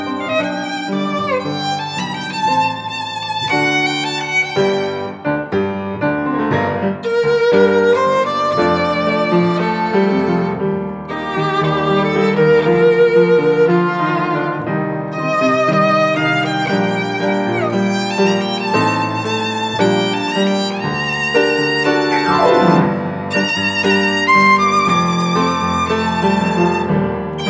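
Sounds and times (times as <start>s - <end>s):
tango on piano and violin: 0.0s - 27.4s.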